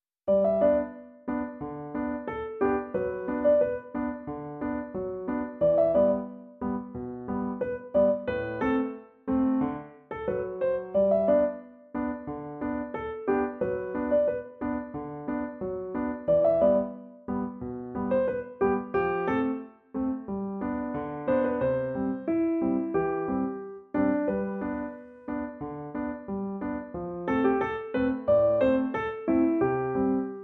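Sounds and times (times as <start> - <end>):
piano music: 0.3 - 30.4.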